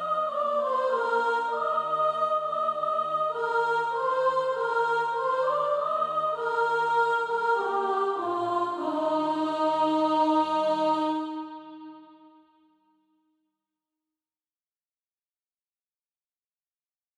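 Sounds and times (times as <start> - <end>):
soprano singing: 0.0 - 12.2.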